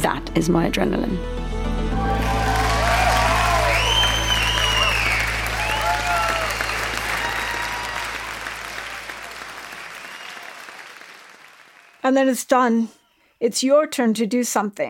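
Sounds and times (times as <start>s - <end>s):
speech: 0.0s - 1.4s, 12.1s - 14.8s
audience cheering: 1.9s - 12.0s.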